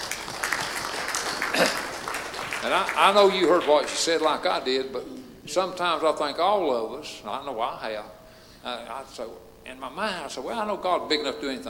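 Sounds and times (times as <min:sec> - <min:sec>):
audience applause: 0:00.0 - 0:04.4
speech: 0:02.6 - 0:11.6.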